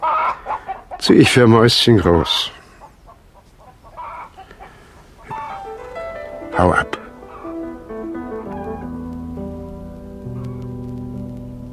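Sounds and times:
small chickens clucking: 0.0s - 1.4s, 2.1s - 9.1s
faint hiss: 0.0s - 11.7s
speech: 1.0s - 2.6s.

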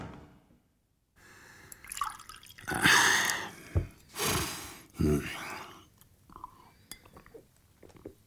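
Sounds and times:
drink poured into a glass: 1.7s - 3.5s
glassware clinking: 6.4s - 7.4s.

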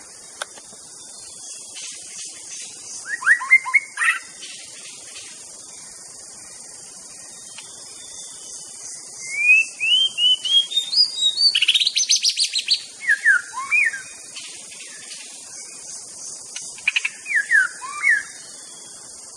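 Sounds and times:
wild white-rumped shama singing in forest: 3.0s - 4.3s, 9.2s - 14.2s, 17.2s - 18.4s.

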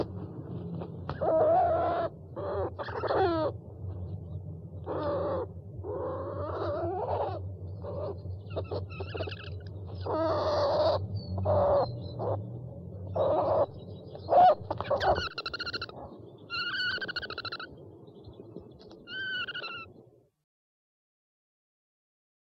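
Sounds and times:
owl hooting: 0.0s - 3.6s, 4.8s - 12.5s, 13.1s - 17.8s, 19.0s - 20.0s.

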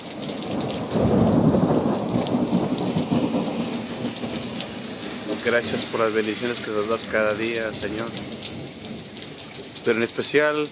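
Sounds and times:
rain: 0.0s - 10.7s
speech: 5.5s - 8.4s, 9.8s - 10.7s.

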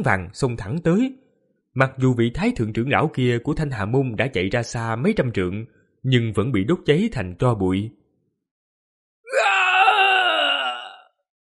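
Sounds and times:
speech: 0.0s - 1.2s, 1.8s - 8.0s
agonized screams and wails: 9.3s - 11.1s.

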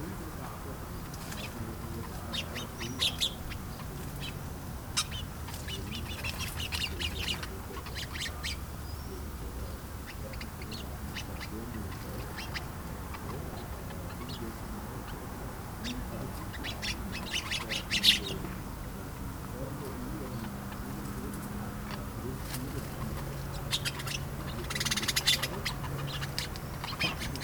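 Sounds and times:
sparrows chattering in their bush at bedtime in a village: 0.0s - 27.4s.

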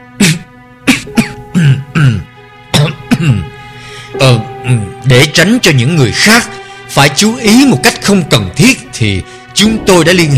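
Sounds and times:
light throat-clearing coughs: 0.2s - 3.4s
speech: 5.1s - 10.3s.

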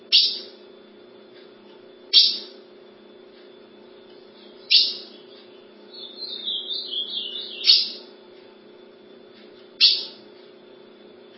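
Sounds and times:
ultramarine grosbeak call note: 4.7s - 8.0s.

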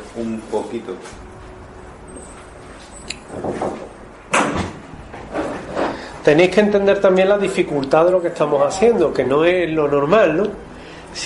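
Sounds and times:
speech: 0.2s - 1.3s, 3.3s - 3.9s, 6.3s - 11.2s
door being closed: 2.4s - 6.2s.

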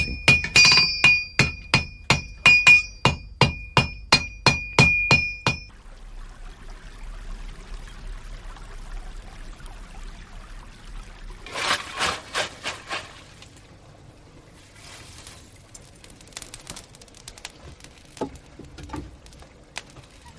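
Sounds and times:
hammer striking an anvil: 0.0s - 5.7s.

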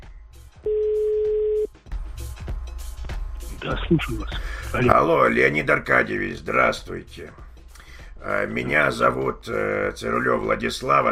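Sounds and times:
telephone dial tone as a call is being placed: 0.7s - 1.7s
speech: 3.6s - 7.4s, 8.2s - 11.1s.

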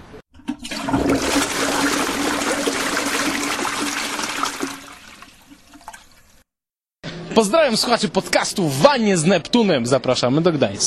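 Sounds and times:
bathwater draining after pulling the plug: 0.3s - 6.4s
speech: 7.4s - 10.8s.

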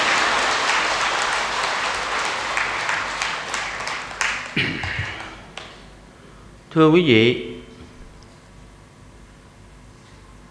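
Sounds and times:
audience applause at a Buddhist dharma talk: 0.0s - 5.9s
speech: 6.8s - 7.5s.

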